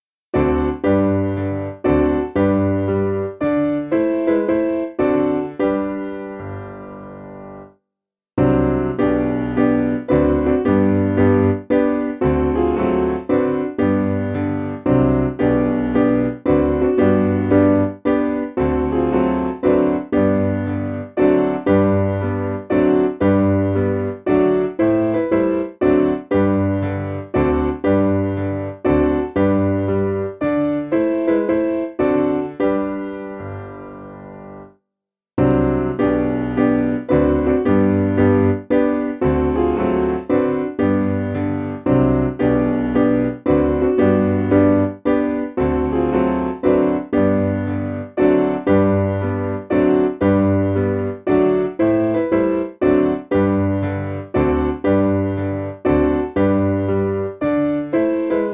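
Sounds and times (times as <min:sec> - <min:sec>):
piano: 0:00.0 - 0:07.8, 0:08.4 - 0:34.8, 0:35.4 - 0:58.5.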